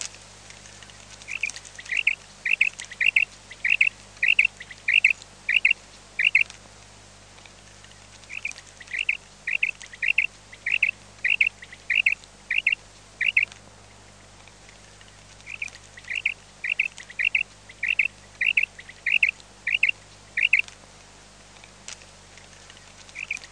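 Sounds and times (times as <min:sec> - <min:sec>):
common quail calls: 0:01.3 - 0:06.5, 0:08.3 - 0:13.5, 0:15.4 - 0:20.7, 0:22.6 - 0:23.5.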